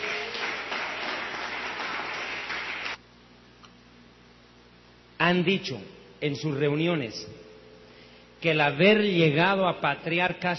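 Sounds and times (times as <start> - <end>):
church audience applauding: 0.0 - 3.0
speech: 5.2 - 7.4, 8.4 - 10.5.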